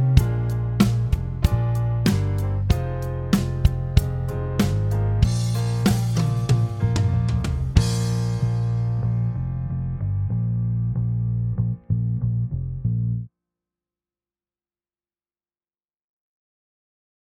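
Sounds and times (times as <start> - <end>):
blues music: 0.0 - 13.1.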